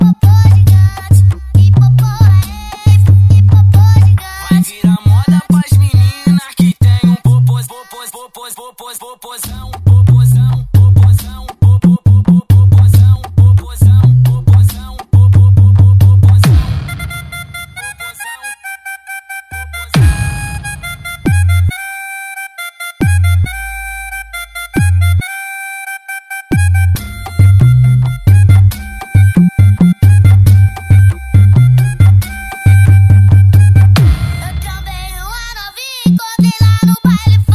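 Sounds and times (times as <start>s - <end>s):
Brazilian funk music with heavy bass: 0.0s - 7.7s, 9.4s - 17.8s, 19.6s - 21.7s, 24.8s - 25.2s, 26.5s - 37.5s.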